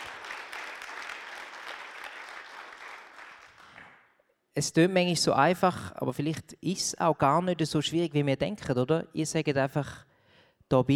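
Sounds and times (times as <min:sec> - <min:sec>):
audience applause: 0:00.0 - 0:04.0
speech: 0:04.6 - 0:10.1, 0:10.7 - 0:10.9.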